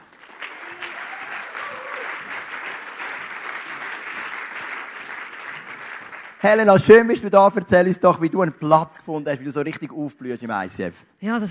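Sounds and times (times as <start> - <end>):
audience applause: 0.0 - 6.7
faint cheering: 0.4 - 2.5
speech: 6.4 - 11.4.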